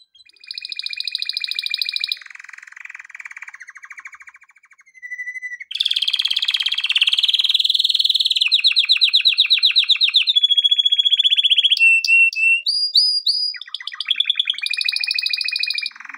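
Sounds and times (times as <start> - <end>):
canary singing: 0.1 - 2.3, 3.0 - 16.1.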